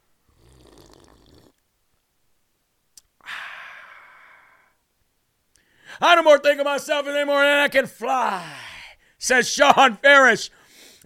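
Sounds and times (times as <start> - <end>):
slurping a drink from a cup: 0.4 - 1.6
speech: 6.0 - 8.6, 9.2 - 11.0.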